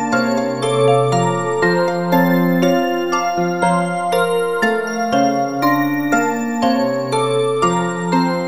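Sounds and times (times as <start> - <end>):
live piano music: 0.0 - 8.3.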